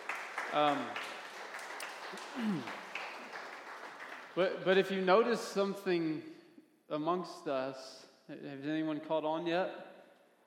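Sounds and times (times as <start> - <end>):
audience applauding: 0.0 - 4.7
speech: 0.5 - 1.1, 2.1 - 2.9, 4.4 - 9.9.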